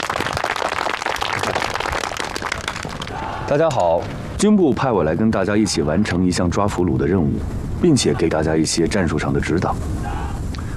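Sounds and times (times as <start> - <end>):
crowd applause: 0.0 - 3.2
speech: 3.5 - 10.2.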